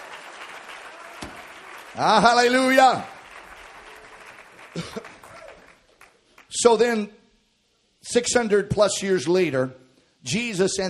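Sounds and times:
audience clapping: 0.0 - 6.6
speech: 2.0 - 3.1, 6.6 - 7.2, 8.0 - 10.8.

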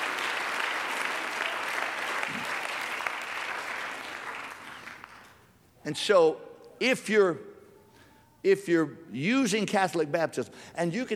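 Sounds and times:
audience clapping: 0.0 - 5.4
speech: 5.8 - 7.5, 8.4 - 11.1.

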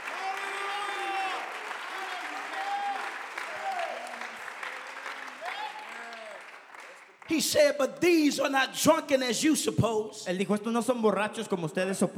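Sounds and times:
audience clapping hands: 0.0 - 8.6
speech: 7.3 - 12.1.

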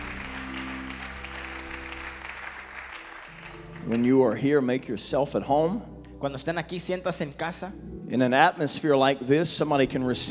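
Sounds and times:
church congregation clapping to welcome visitors: 0.0 - 4.7
low sustained musical hum: 0.0 - 10.2
speech: 3.9 - 10.2.

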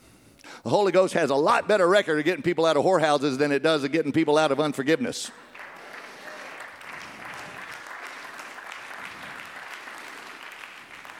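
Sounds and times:
speech: 0.6 - 5.5
scattered applause: 5.3 - 11.1.

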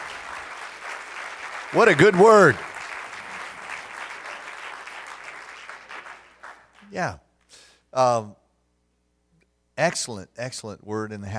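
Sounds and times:
audience applause: 0.0 - 6.9
speech: 1.7 - 2.7, 6.9 - 8.4, 9.8 - 11.3.

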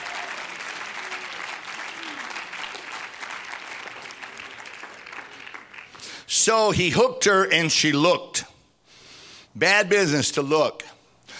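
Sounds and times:
audience clapping: 0.0 - 6.3
speech: 6.4 - 8.5, 9.6 - 11.0.

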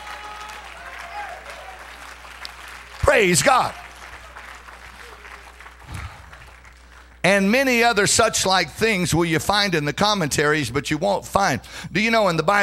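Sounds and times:
audience clapping hands: 0.0 - 7.5
speech: 3.1 - 3.8, 7.2 - 12.6.

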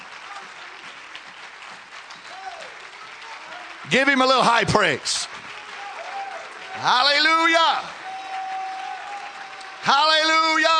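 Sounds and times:
audience clapping hands: 0.0 - 10.7
speech: 3.9 - 5.4, 6.8 - 8.0, 9.8 - 10.7.

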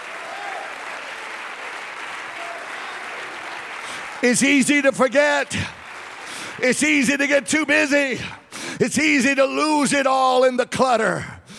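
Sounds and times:
audience clapping hands: 0.0 - 8.6
speech: 4.2 - 5.8, 6.6 - 11.3.

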